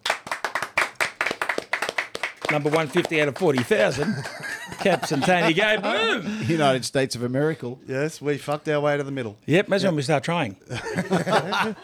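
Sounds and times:
hand clapping: 0.0 - 5.4
laughter: 2.5 - 6.9, 10.7 - 11.8
speech: 2.5 - 11.8.

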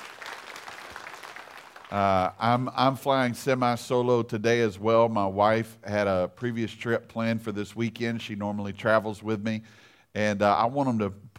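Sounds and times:
audience clapping hands: 0.0 - 2.6
speech: 1.9 - 11.3.

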